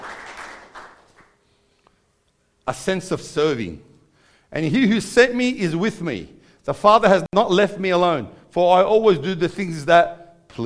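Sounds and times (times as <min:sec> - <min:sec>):
round of applause: 0:00.0 - 0:01.4
speech: 0:02.7 - 0:03.9, 0:04.5 - 0:10.6.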